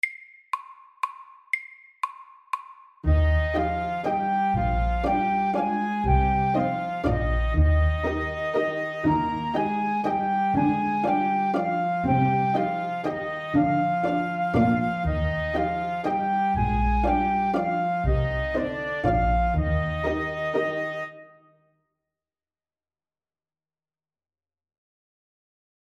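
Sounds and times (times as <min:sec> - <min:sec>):
fast legato waltz: 0:03.1 - 0:21.1.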